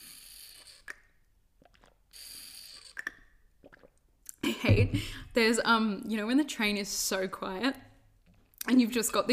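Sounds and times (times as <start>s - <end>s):
sipping water from a bottle: 0.0s - 4.4s
speech: 4.6s - 7.9s, 8.7s - 9.3s.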